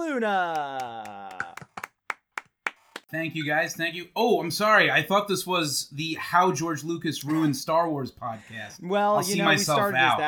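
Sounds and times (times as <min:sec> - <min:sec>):
speech: 0:00.0 - 0:01.1, 0:03.1 - 0:10.2
round of applause: 0:00.5 - 0:03.1.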